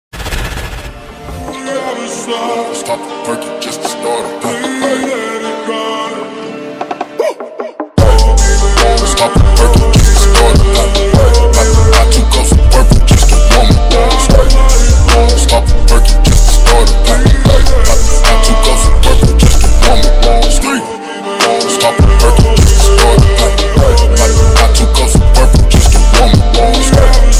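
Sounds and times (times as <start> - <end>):
remixed background music ringtone: 0.2 - 27.3.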